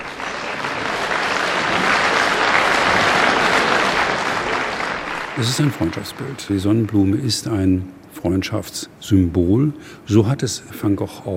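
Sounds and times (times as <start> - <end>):
thunderous applause at auction: 0.0 - 7.3
speech: 5.4 - 11.3.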